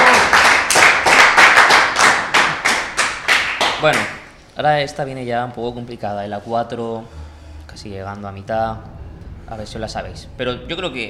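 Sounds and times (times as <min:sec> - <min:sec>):
audience applause: 0:00.0 - 0:04.1
speech: 0:03.8 - 0:07.2, 0:07.8 - 0:11.0.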